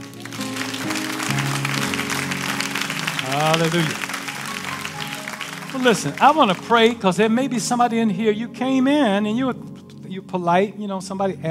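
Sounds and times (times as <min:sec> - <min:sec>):
audience clapping hands: 0:00.0 - 0:07.1
speech: 0:03.4 - 0:04.1, 0:05.7 - 0:11.4.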